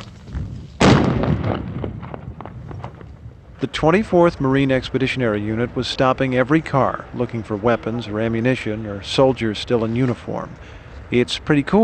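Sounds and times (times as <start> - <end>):
explosives blasting trenches in the desert: 0.7 - 3.7
speech: 3.6 - 11.8.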